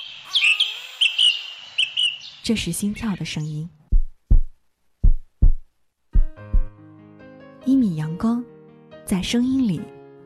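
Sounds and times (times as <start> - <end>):
forest birds chirping: 0.0 - 3.7
speech: 2.4 - 3.8, 7.8 - 8.5, 9.1 - 10.0.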